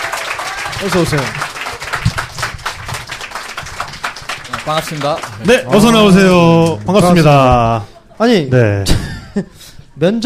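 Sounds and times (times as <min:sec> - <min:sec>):
audience clapping to welcome a guest: 0:00.0 - 0:07.5
speech: 0:00.8 - 0:01.4, 0:04.7 - 0:10.2.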